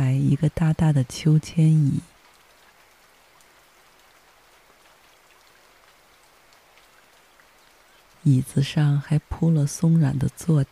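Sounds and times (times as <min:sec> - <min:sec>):
rain falling: 0:00.0 - 0:10.7
speech: 0:00.3 - 0:02.1, 0:08.2 - 0:10.7.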